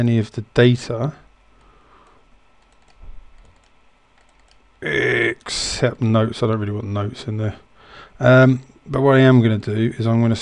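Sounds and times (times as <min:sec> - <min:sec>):
speech: 0:00.0 - 0:01.2, 0:04.8 - 0:10.3
faint computer mouse double-clicks on database fields: 0:01.6 - 0:04.6.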